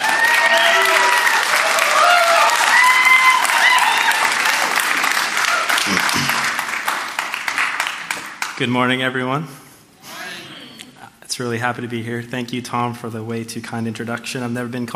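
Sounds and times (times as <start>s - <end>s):
cheers and whoops: 0.0s - 4.7s
large crowd applause: 0.0s - 8.6s
speech: 8.6s - 9.7s, 11.4s - 14.9s.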